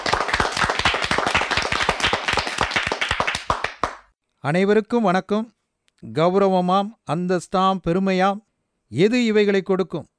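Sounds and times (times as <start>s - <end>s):
audience clapping: 0.0s - 4.1s
speech: 4.4s - 10.1s.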